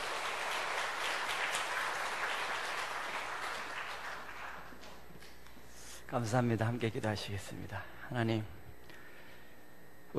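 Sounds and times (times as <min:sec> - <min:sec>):
crowd applause welcoming a speaker: 0:00.0 - 0:05.0
speech: 0:06.1 - 0:08.6.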